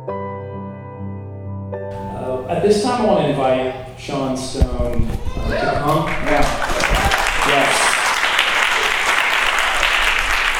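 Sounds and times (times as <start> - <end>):
audience applause: 1.9 - 4.6, 5.8 - 10.5
speech: 1.9 - 6.8.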